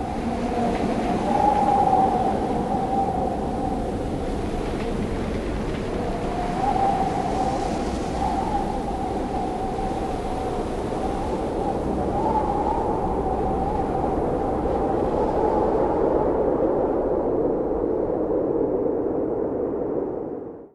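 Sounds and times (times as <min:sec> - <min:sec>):
wind: 0:00.0 - 0:20.7.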